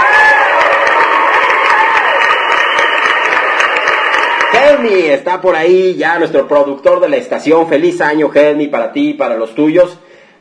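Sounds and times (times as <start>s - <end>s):
scattered whoops: 0.0s - 4.5s
crowd applause and cheering: 0.0s - 5.7s
speech: 4.7s - 10.0s.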